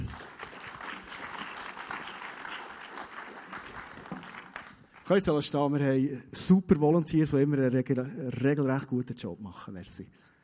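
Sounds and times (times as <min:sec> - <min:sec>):
crowd applauding: 0:00.0 - 0:05.6
speech: 0:05.1 - 0:10.3.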